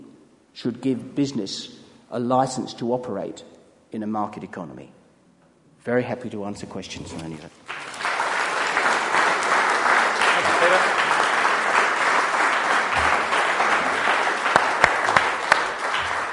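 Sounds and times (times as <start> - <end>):
speech: 0.6 - 5.0, 5.8 - 7.8
warm applause: 7.6 - 16.3.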